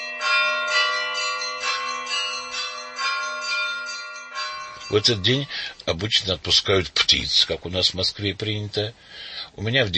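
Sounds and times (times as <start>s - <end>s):
festive church bells ringing: 0.0s - 6.1s
speech: 4.9s - 9.9s.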